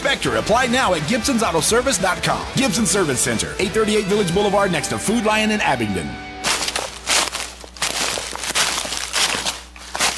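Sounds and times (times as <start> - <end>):
speech: 0.2 - 6.3
footsteps crunching through dry leaves: 6.4 - 10.1.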